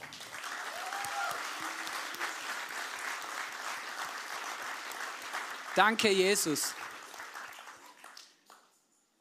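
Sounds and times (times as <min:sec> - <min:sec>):
audience applause: 0:00.0 - 0:08.6
speech: 0:05.8 - 0:06.8.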